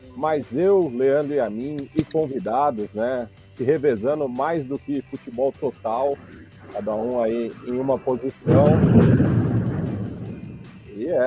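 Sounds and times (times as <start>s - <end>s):
speech: 0.2s - 9.3s, 11.0s - 11.2s
thunder during rain: 8.4s - 10.9s.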